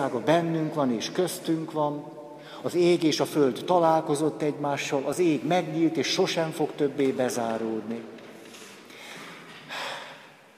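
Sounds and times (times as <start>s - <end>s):
speech: 0.0s - 8.2s
deep breath in: 2.4s - 2.6s, 8.5s - 10.5s.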